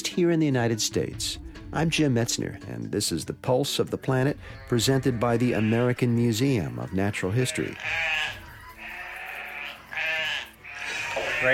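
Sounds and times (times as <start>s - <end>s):
speech: 0.2s - 8.4s
Shetland sheep and lambs bleating at Cabbage Hill Farm in Mount Kisco, New York: 4.2s - 11.5s.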